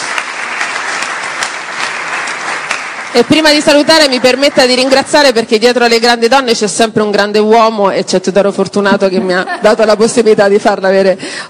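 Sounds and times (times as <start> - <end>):
audience applause: 0.0 - 5.4
speech: 3.1 - 11.4.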